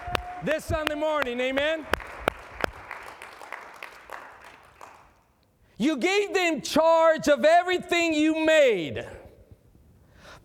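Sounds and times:
audience clapping: 0:00.0 - 0:05.4
speech: 0:00.4 - 0:02.0, 0:05.8 - 0:09.2.

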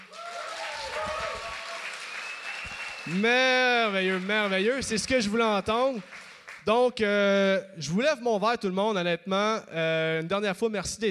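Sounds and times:
audience applause: 0:00.0 - 0:06.6
speech: 0:03.1 - 0:11.0.

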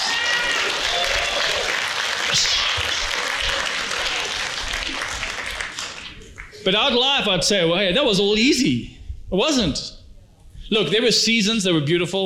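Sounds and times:
audience clapping and cheering: 0:00.0 - 0:06.6
speech: 0:02.3 - 0:02.6, 0:06.6 - 0:09.9, 0:10.7 - 0:12.2.

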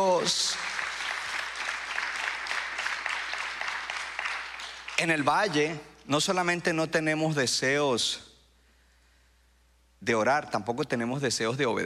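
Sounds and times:
audience applauding: 0:00.0 - 0:05.8
speech: 0:05.0 - 0:08.3, 0:10.0 - 0:11.8.

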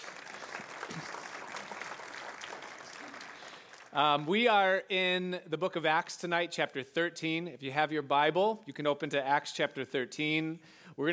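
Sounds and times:
audience applause: 0:00.0 - 0:04.2
speech: 0:03.9 - 0:11.1.

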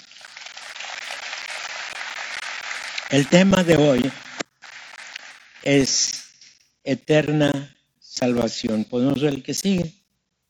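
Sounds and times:
audience applause: 0:00.0 - 0:05.2
speech: 0:03.1 - 0:04.3, 0:05.7 - 0:06.2, 0:06.8 - 0:10.0.

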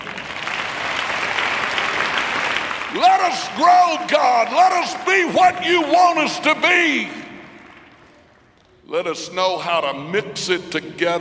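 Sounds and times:
audience hand clapping: 0:00.0 - 0:05.1, 0:06.8 - 0:08.5
speech: 0:03.0 - 0:07.2, 0:08.9 - 0:11.2.

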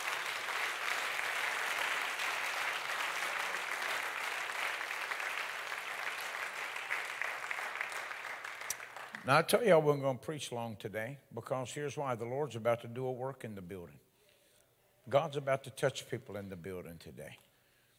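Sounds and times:
audience clapping: 0:00.0 - 0:09.5
speech: 0:09.2 - 0:14.0, 0:15.1 - 0:17.5.

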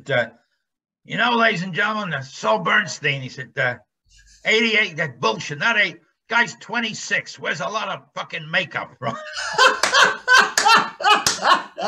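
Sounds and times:
speech: 0:00.0 - 0:00.4, 0:01.0 - 0:11.8
laughter: 0:09.0 - 0:11.8
audience applause: 0:09.7 - 0:11.8.

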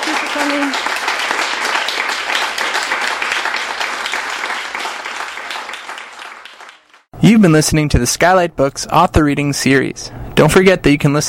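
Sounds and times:
audience clapping after an author's reading at a bookstore: 0:00.0 - 0:07.1
speech: 0:00.4 - 0:00.9, 0:07.2 - 0:11.2.

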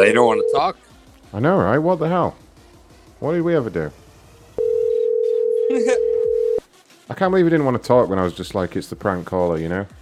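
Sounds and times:
ringback tone on an unanswered prank phone call: 0:00.0 - 0:00.8, 0:04.6 - 0:06.6
speech: 0:00.0 - 0:02.4, 0:03.2 - 0:04.0, 0:05.7 - 0:06.2, 0:07.1 - 0:10.0.

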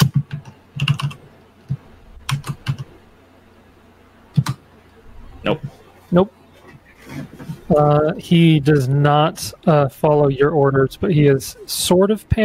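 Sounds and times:
typing on a computer keyboard to enter a d20 dice roll: 0:00.0 - 0:01.2, 0:02.3 - 0:02.9, 0:04.4 - 0:04.6
speech: 0:06.1 - 0:06.4, 0:07.7 - 0:12.4.

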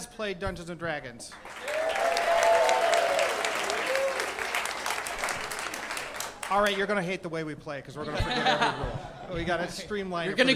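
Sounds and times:
speech: 0:00.0 - 0:01.6, 0:06.5 - 0:10.5
audience applause: 0:01.4 - 0:06.8
laughter: 0:08.0 - 0:09.7, 0:10.3 - 0:10.5.

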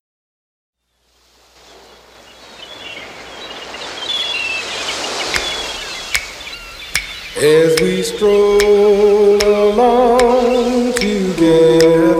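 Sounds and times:
ocean waves: 0:00.8 - 0:12.1
speech: 0:07.4 - 0:09.1.

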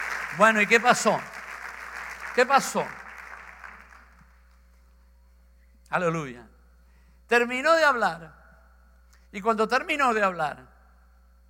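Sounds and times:
audience applauding: 0:00.0 - 0:04.5
speech: 0:00.4 - 0:01.3, 0:02.4 - 0:03.0, 0:05.9 - 0:06.5, 0:07.3 - 0:08.4, 0:09.3 - 0:10.7.

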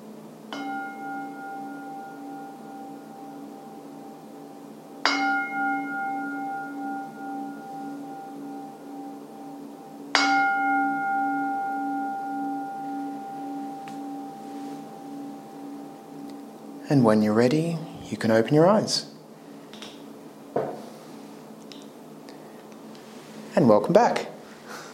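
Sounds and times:
gong ringing: 0:00.5 - 0:19.3
speech: 0:16.9 - 0:19.1, 0:23.9 - 0:24.3.

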